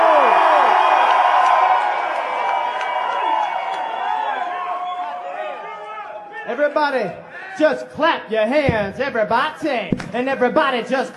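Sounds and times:
crowd cheering and shouting: 0.0 - 7.8
speech: 6.7 - 11.1.

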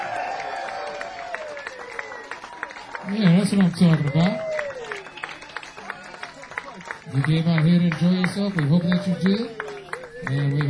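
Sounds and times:
audience applause: 0.0 - 10.6
speech: 3.0 - 4.4, 7.2 - 9.6, 10.3 - 10.6.

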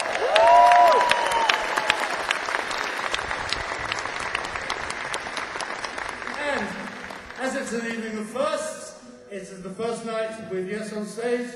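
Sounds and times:
audience applause welcoming keyboard player: 0.0 - 8.1
speech: 9.4 - 11.5.

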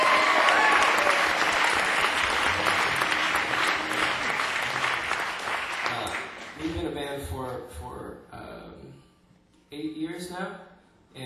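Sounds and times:
audience applause: 0.0 - 7.0
speech: 9.7 - 11.2.

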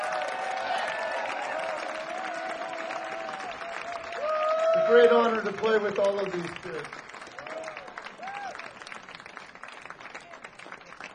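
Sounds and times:
audience applause for the band: 0.0 - 11.1
speech: 4.9 - 7.1.

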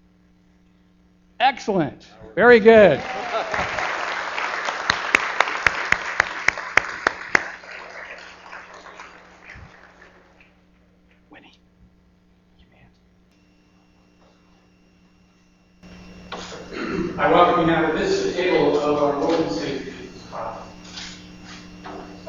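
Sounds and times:
speech: 1.4 - 3.8
audience clapping: 2.7 - 10.9
laughter: 2.8 - 10.4, 16.4 - 20.8.

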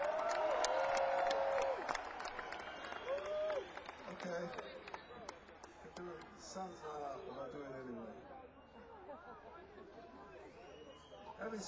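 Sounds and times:
audience applause: 0.0 - 6.4
crowd cheering: 0.0 - 7.6
speech: 11.4 - 11.6.

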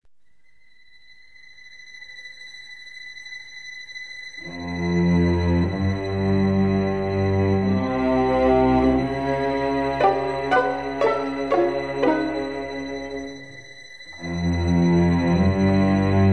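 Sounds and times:
snooper suspense music: 4.7 - 16.2.

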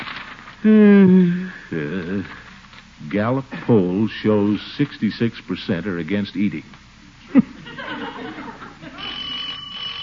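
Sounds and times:
speech: 0.6 - 8.2
laughter: 7.2 - 9.2
doorbell ringing: 9.0 - 10.0.

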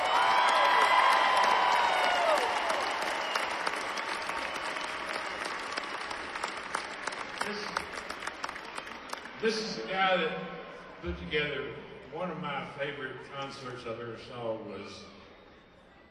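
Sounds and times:
audience whistles and cheers: 0.0 - 6.6, 8.4 - 9.4
audience applause: 0.0 - 9.4
speech: 9.4 - 15.2.

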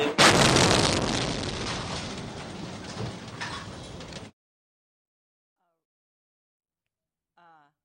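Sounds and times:
rocket exploding near a news conference in Baghdad: 0.2 - 3.2.

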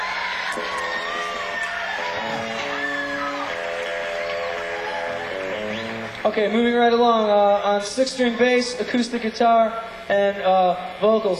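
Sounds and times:
crowd cheering and whooping: 0.0 - 6.8
audience applause: 0.0 - 7.2
speech: 6.2 - 11.3.

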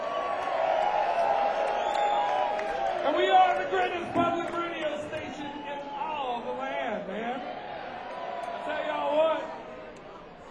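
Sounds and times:
high whoops: 0.0 - 3.2
concert crowd cheering: 0.0 - 10.4
speech: 3.1 - 4.6.

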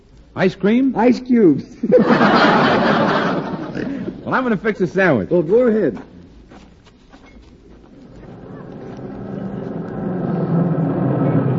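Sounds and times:
speech: 0.4 - 3.3, 4.3 - 6.1
laughter: 1.7 - 4.4
milk truck pulling into driveway: 8.0 - 11.5.

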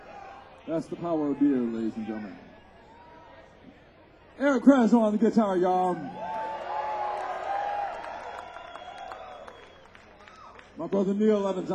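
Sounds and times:
speech: 0.7 - 2.5, 4.4 - 6.2, 10.8 - 11.7
live audience cheering with high wavering whoops: 5.9 - 10.6
live audience clapping: 6.2 - 11.2.

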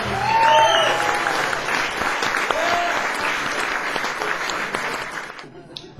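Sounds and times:
audience applause for a banjo player at a concert: 0.0 - 5.5
audience whistles: 0.3 - 1.1.

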